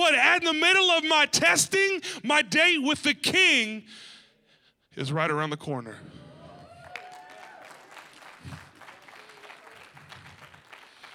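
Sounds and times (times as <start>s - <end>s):
speech: 0.0s - 4.1s, 5.0s - 6.2s
audience clapping: 6.6s - 11.1s.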